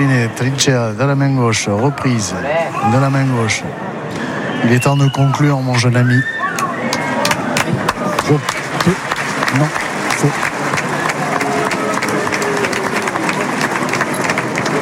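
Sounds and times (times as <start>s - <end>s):
speech: 0.0s - 6.4s, 8.3s - 10.5s
applause: 6.6s - 14.8s.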